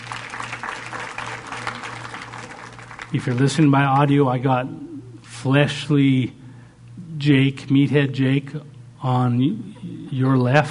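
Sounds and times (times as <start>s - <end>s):
audience applause: 0.0s - 4.1s
speech: 3.1s - 6.4s, 7.2s - 10.6s.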